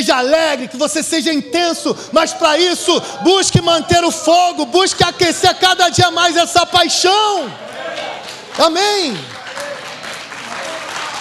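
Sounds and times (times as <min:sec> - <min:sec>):
speech: 0:00.1 - 0:09.4
audience applauding: 0:07.6 - 0:11.1.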